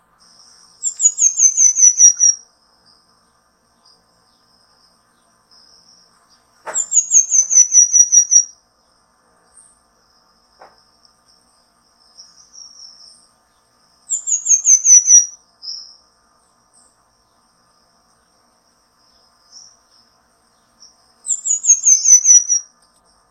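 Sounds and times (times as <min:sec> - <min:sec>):
Pin-tailed manakin song: 0:00.3 - 0:02.4, 0:06.7 - 0:08.5, 0:12.2 - 0:16.0, 0:20.6 - 0:22.7.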